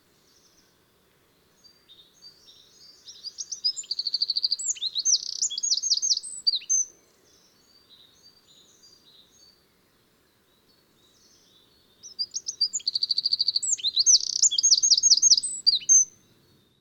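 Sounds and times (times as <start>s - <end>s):
Eurasian wren singing rattling trills: 1.6s - 9.6s, 11.0s - 16.2s.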